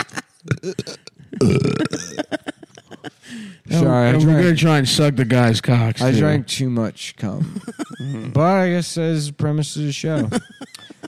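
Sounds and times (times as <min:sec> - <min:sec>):
throaty vocal bursts: 0:00.4 - 0:02.2, 0:08.0 - 0:08.4
loud rumbling burp: 0:00.5 - 0:02.2
speech: 0:00.6 - 0:02.0, 0:03.8 - 0:10.6
laughter: 0:01.8 - 0:03.4, 0:07.4 - 0:08.4, 0:10.1 - 0:11.0.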